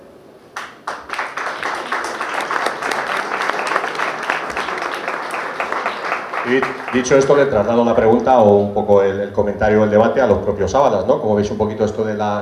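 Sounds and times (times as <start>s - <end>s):
audience applause: 0.6s - 8.4s
speech: 6.5s - 12.4s.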